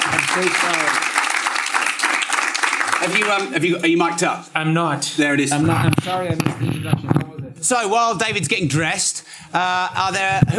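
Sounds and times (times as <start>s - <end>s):
audience applause: 0.0s - 3.6s
speech: 0.4s - 1.2s, 3.0s - 10.5s.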